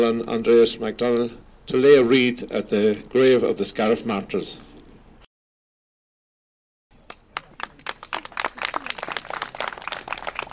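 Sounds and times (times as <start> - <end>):
speech: 0.0 - 4.7
crowd applause after wreath laying: 7.1 - 10.5.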